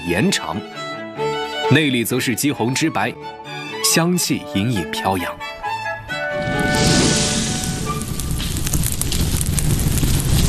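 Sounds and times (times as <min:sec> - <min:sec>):
speech: 0:00.1 - 0:00.8, 0:01.7 - 0:05.5
fierce fire burning under iron wok: 0:06.2 - 0:10.4.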